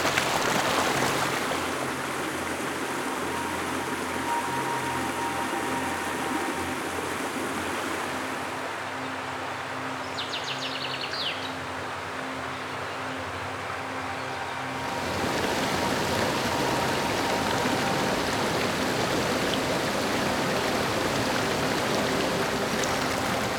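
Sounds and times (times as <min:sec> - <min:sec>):
water flowing: 0:00.0 - 0:23.5.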